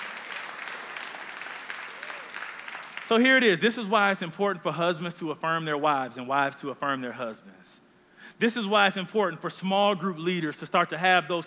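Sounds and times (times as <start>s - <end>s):
applause: 0.0s - 3.5s
speech: 3.1s - 11.4s.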